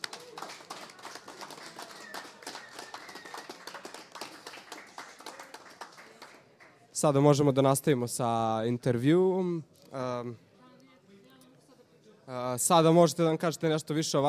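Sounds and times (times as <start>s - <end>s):
small group clapping in a radio studio: 0.0s - 6.8s
speech: 7.0s - 10.5s, 12.3s - 14.2s.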